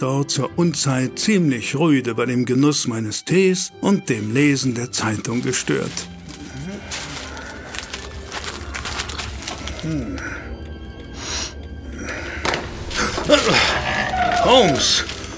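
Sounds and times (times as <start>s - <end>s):
speech: 0.0s - 6.2s, 9.8s - 10.4s, 14.5s - 15.1s
door flung open with loud clatter and rattle: 12.4s - 15.3s.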